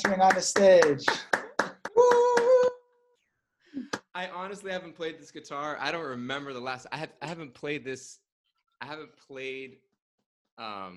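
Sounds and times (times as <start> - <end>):
speech: 0.0 - 1.4, 4.2 - 8.2, 8.8 - 9.9, 10.6 - 10.9
sharp audience claps: 0.0 - 2.7.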